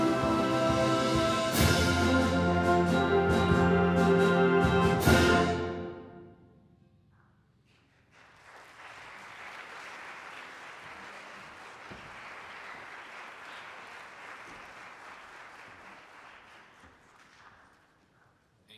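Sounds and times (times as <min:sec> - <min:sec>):
wind band fanfare: 0:00.0 - 0:06.2.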